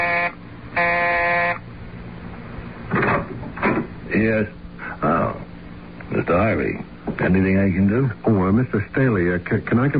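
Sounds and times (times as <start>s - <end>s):
doorbell buzzer being pressed: 0.0s - 1.6s
speech: 4.1s - 5.1s, 6.3s - 9.9s.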